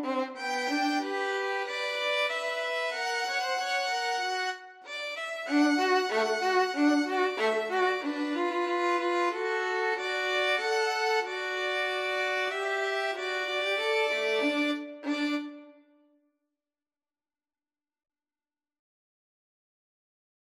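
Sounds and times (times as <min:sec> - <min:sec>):
violin duet: 0:00.0 - 0:15.8.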